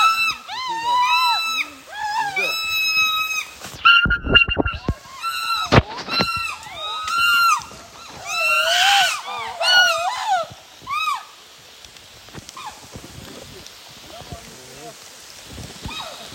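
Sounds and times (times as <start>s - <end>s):
chimpanzees calling: 0.0s - 11.4s.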